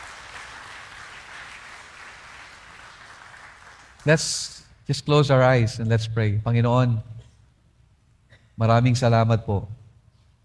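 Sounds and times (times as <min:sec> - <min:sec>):
church congregation applauding: 0:00.0 - 0:04.2
speech: 0:04.0 - 0:07.2, 0:08.6 - 0:09.8.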